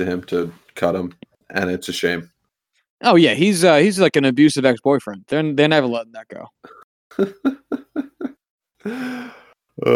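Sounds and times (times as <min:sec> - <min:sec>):
speech: 0:00.0 - 0:02.4, 0:03.0 - 0:09.9
breathy vocal bursts: 0:08.8 - 0:09.9.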